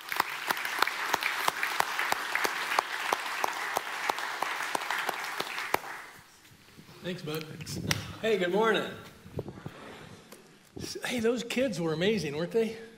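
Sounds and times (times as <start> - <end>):
church congregation at a Christmas family service clapping to welcome a speaker: 0.0 - 6.3
speech: 7.0 - 9.1, 11.0 - 12.9.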